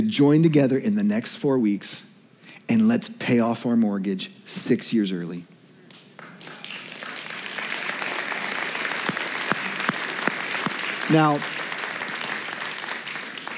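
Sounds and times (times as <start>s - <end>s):
speech: 0.0s - 2.1s, 2.7s - 5.5s, 11.1s - 11.6s
audience clapping: 5.9s - 13.5s.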